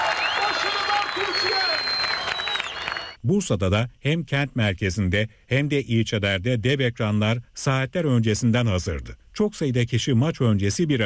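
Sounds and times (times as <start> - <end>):
crowd cheering and clapping in Konak Square, Izmir: 0.0 - 3.2
speech: 3.2 - 11.0.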